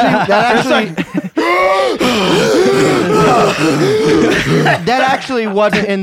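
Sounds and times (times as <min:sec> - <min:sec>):
laughter: 0:00.0 - 0:05.8
speech: 0:00.1 - 0:06.0
man breathing heavily: 0:01.4 - 0:04.8.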